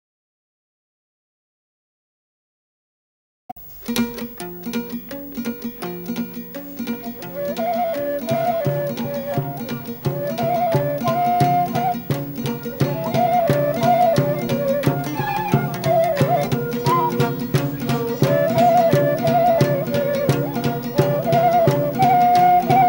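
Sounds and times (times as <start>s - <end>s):
caval and fluier shepherd flutes: 6.6s - 22.8s.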